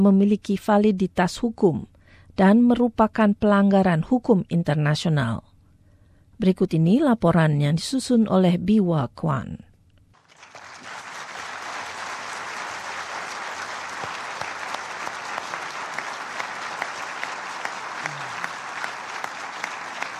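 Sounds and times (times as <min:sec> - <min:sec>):
speech: 0:00.0 - 0:05.5, 0:06.4 - 0:09.7
applause from UN Security Council members after a resolution vote: 0:10.2 - 0:20.1.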